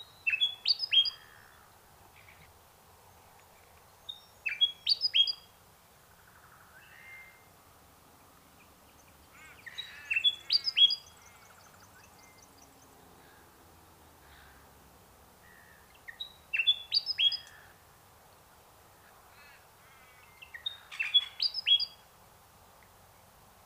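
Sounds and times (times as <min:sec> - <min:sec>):
bird high chirps with falling slurs: 0:00.0 - 0:01.2, 0:04.1 - 0:05.5, 0:09.4 - 0:12.7, 0:16.0 - 0:17.5, 0:20.2 - 0:22.0.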